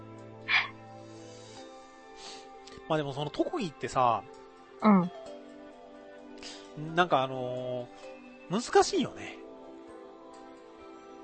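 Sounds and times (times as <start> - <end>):
raspy frog croak outside: 0.5 - 0.7
speech: 2.9 - 5.2, 6.8 - 9.4.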